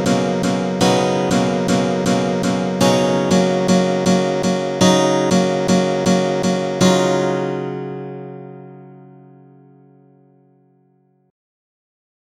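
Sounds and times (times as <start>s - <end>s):
rough guitar riffs: 0.0s - 9.3s.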